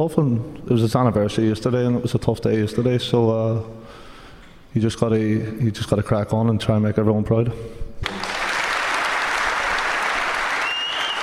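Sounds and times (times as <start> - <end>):
speech: 0.0 - 4.0, 4.7 - 7.8
live audience applause from a large crowd: 8.0 - 11.2
faint whistle: 10.6 - 11.2.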